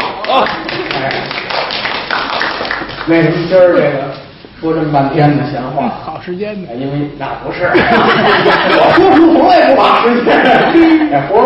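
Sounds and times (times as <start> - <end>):
audience clapping at a Chinese storytelling show: 0.0 - 3.2
speech: 0.3 - 1.4, 3.1 - 11.4
laughter: 7.5 - 11.4.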